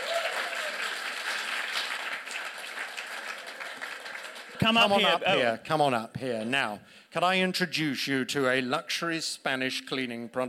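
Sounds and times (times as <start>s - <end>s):
audience applause: 0.0s - 5.3s
speech: 4.6s - 10.4s.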